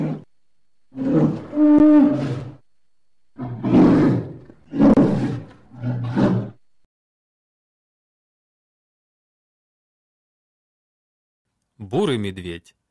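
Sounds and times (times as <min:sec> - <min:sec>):
polar bear roaring growls: 0:00.0 - 0:00.3, 0:00.9 - 0:02.6, 0:03.4 - 0:06.6
speech: 0:11.8 - 0:12.8.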